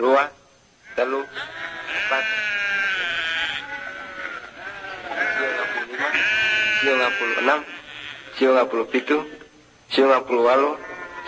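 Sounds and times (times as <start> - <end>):
speech: 0.0 - 0.4, 1.0 - 2.4, 6.9 - 7.8, 8.4 - 10.9
sheep bleating in a shepherd's flock: 0.9 - 9.2.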